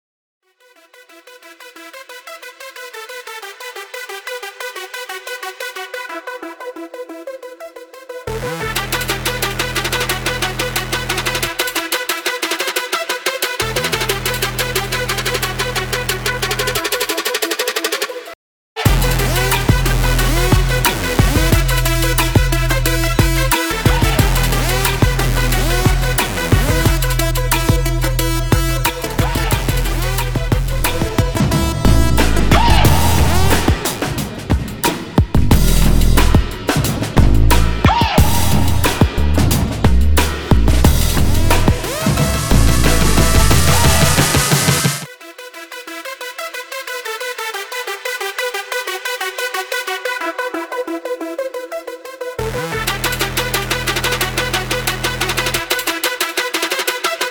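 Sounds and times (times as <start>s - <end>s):
electro music: 0.8s - 57.3s.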